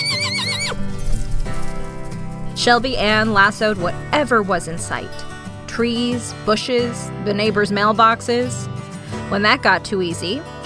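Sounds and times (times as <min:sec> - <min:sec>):
pony whinnying: 0:00.0 - 0:01.4
pony hoofbeats galloping: 0:00.0 - 0:05.8
speech: 0:02.6 - 0:05.2, 0:05.8 - 0:10.6.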